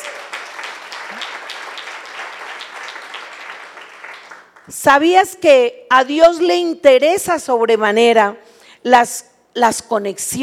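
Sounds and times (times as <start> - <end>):
audience applause: 0.0 - 4.7
speech: 4.7 - 10.4.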